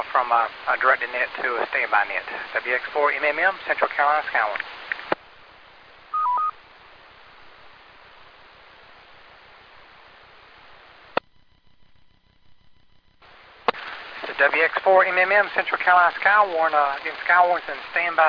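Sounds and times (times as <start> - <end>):
faint steady tones: 0.0 - 18.2
steady radio hiss: 0.0 - 18.2
speech: 0.2 - 4.8, 14.4 - 18.2
short dual-pitched radio repeater beep: 6.2 - 6.5.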